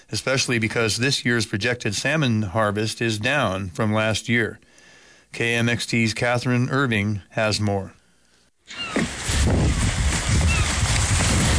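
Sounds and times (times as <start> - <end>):
speech: 0.0 - 4.7, 5.3 - 8.0
wind at a fishing boat dock in Kodiak: 8.6 - 11.5.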